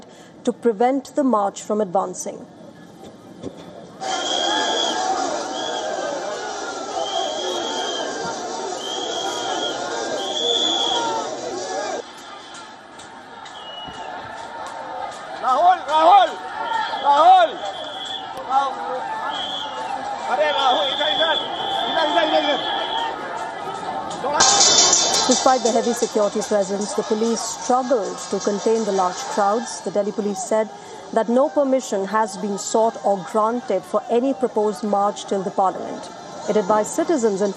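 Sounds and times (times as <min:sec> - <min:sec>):
speech: 0:00.4 - 0:02.6, 0:25.6 - 0:37.5
crowd of demonstrators chattering at protest site: 0:02.4 - 0:37.5
demonstrators shouting: 0:04.0 - 0:37.5.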